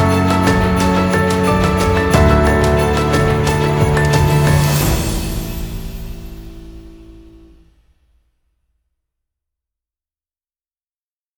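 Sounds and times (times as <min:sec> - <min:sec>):
inspiring Christmas piano music: 0:00.0 - 0:07.6.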